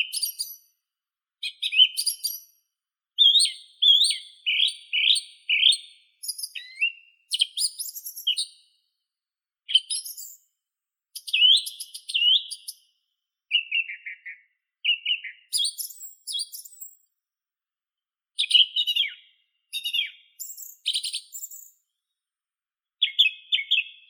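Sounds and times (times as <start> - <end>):
song thrush Turdus philomelos singing: 0.0 - 0.8, 1.4 - 8.9, 9.7 - 10.5, 11.1 - 17.1, 18.4 - 21.9.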